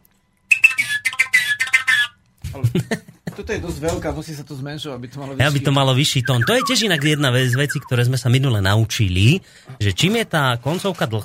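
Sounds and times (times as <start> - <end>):
folk whistle imitating a tit's call: 0.5 - 2.2, 6.0 - 8.2
speech: 2.6 - 11.2.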